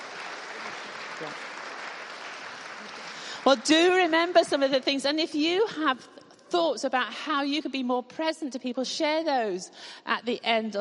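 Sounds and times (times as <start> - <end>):
audience clapping for the children: 0.0 - 4.8
speech: 1.2 - 1.5, 3.4 - 10.7.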